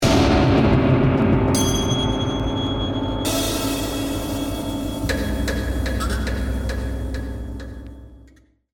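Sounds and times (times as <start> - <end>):
dangerous stab: 0.0 - 8.3.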